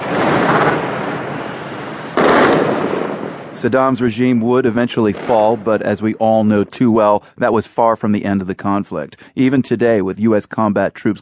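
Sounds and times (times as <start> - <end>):
heavy bomb blasts of the 2003 shock and awe bombing of Baghdad: 0.0 - 7.0
speech: 3.6 - 11.2.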